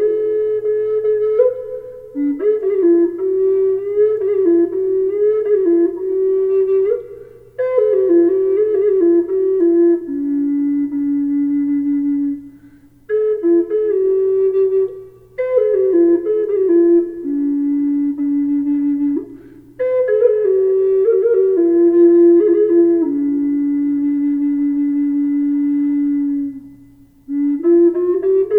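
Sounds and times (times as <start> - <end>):
low D flute with reverb: 0.0 - 28.5.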